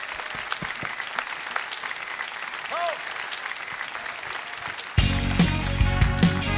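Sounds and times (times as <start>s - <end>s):
audience applause at a live variety show: 0.0s - 6.5s
band music: 5.0s - 6.5s.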